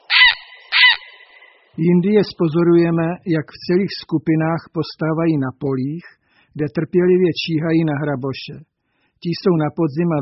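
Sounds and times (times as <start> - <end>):
grey heron squawking: 0.0 - 1.8
speech: 1.8 - 10.2.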